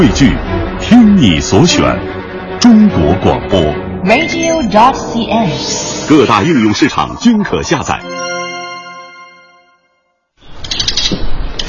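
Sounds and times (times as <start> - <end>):
speech: 0.0 - 8.3
ringing chime: 8.0 - 10.2.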